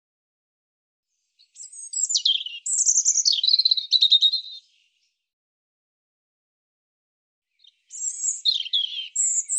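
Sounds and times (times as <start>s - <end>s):
European robin singing high warbles and trills: 1.1s - 5.3s, 7.5s - 9.5s.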